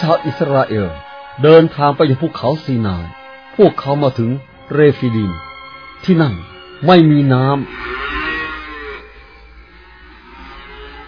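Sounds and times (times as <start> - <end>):
speech: 0.0 - 7.9
thirsty livestock herd crying out: 7.5 - 11.0.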